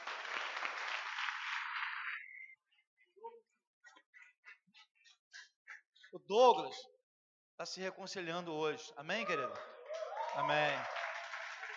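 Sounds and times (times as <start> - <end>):
audience applauding: 0.0 - 2.5, 9.3 - 11.7
speech: 6.1 - 6.9, 7.6 - 9.7, 10.4 - 11.0.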